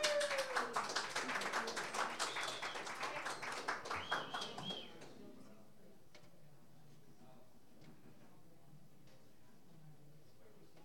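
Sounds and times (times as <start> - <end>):
scattered audience applause welcoming a guest musician at a small show: 0.0 - 5.2.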